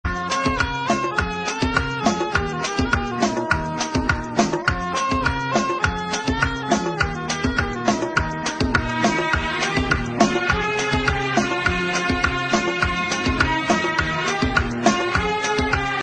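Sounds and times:
instrumental music: 0.1s - 16.0s.

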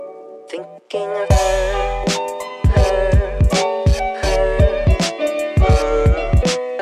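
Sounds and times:
vaporwave music: 1.3s - 6.7s.

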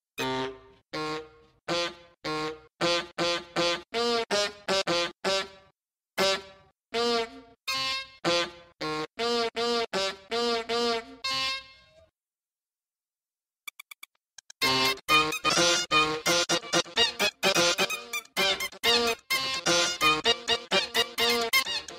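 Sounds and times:
horn playing a cover: 0.2s - 5.6s, 6.2s - 12.0s, 14.6s - 21.9s.

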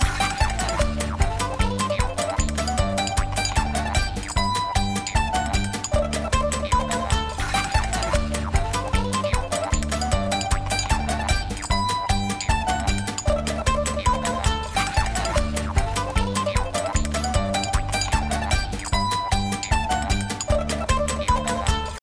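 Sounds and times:
banjo: 0.0s - 22.0s.

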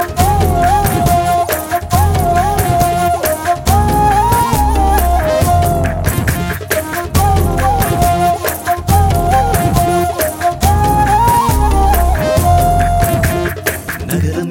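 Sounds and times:
background music: 0.0s - 14.5s.

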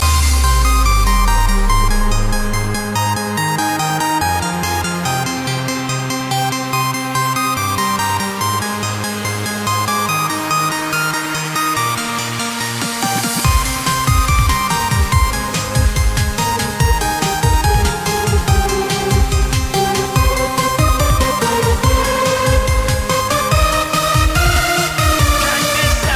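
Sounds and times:
bass: 0.0s - 26.1s.

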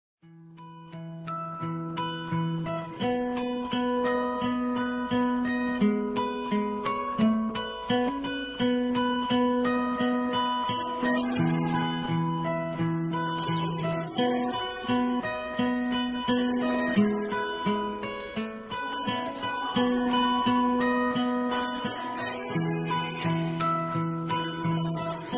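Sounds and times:
karaoke instrumental music: 0.6s - 25.3s.

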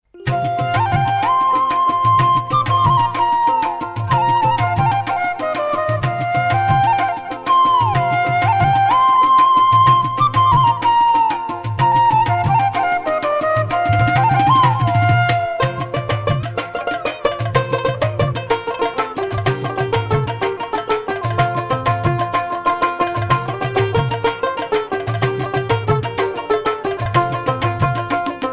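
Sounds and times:
folk music: 0.0s - 28.5s.

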